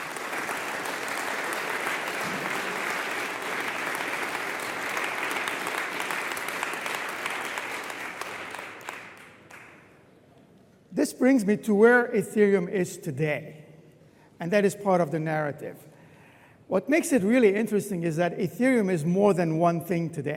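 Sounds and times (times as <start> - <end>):
audience applause: 0.0 - 9.8
speech: 11.2 - 13.6, 14.4 - 15.9, 16.7 - 20.3.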